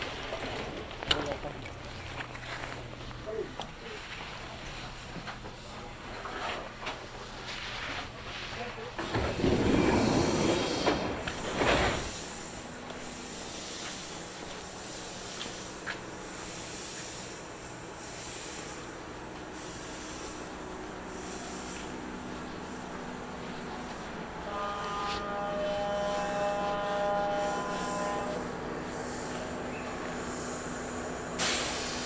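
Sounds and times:
Kintetsu Osaka Line express train rumbling from Nabari to Yamato-Asakura: 0.0s - 32.0s
high steady whine: 8.6s - 32.0s.

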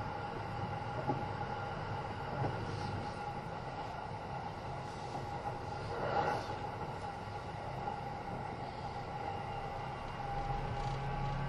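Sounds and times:
Kintetsu 80000 series Hinotori limited express train running noise inside: 0.0s - 11.4s.

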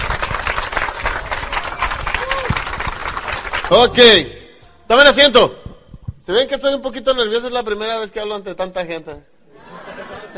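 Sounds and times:
crowd applause: 0.0s - 4.0s
speech: 3.7s - 5.6s, 6.3s - 9.3s
laughter: 9.5s - 10.3s.

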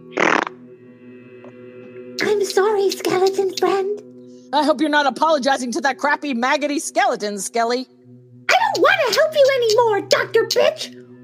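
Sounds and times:
fart sound effect: 0.0s - 0.6s
speech: 2.4s - 8.0s, 8.8s - 11.0s.

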